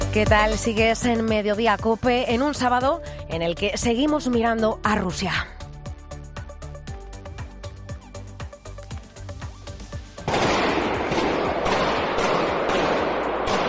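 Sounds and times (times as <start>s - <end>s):
speech: 0.2s - 5.5s
gunshots in a shopping centre attack northwest of Moscow: 10.2s - 13.6s.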